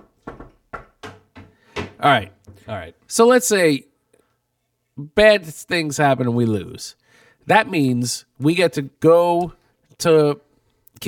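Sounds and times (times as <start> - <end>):
knocking on wood: 0.0 - 2.7
speech: 2.0 - 3.9, 5.0 - 11.0.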